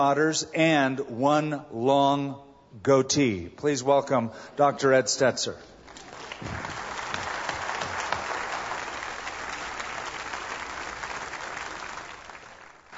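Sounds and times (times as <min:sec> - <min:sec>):
speech: 0:00.0 - 0:05.7, 0:06.4 - 0:06.8
audience applause: 0:05.9 - 0:12.9.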